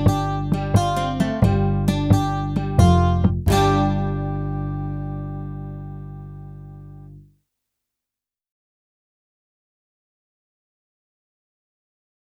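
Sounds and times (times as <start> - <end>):
clarinet rhythm track: 0.0 - 6.4.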